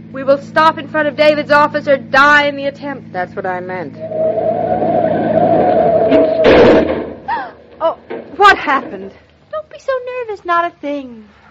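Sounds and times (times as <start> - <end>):
speech: 0.1 - 6.3, 8.7 - 9.2, 9.8 - 11.4
rising squeal: 3.8 - 7.2
car engine drone: 3.8 - 7.3.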